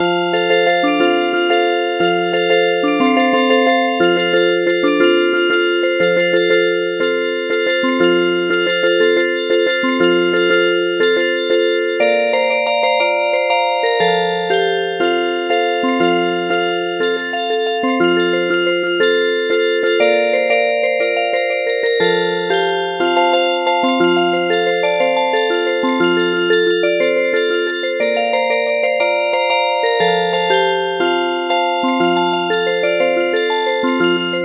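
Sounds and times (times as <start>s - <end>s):
MIDI music box melody: 0.0s - 34.4s.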